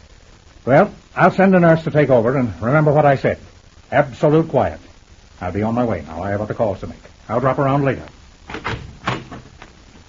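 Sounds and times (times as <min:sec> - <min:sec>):
speech: 0:00.6 - 0:08.8
door creaking open: 0:08.5 - 0:09.7.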